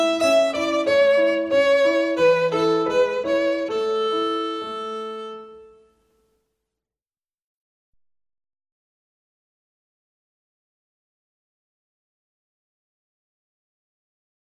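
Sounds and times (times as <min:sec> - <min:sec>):
violin playing a folk song: 0:00.0 - 0:05.9.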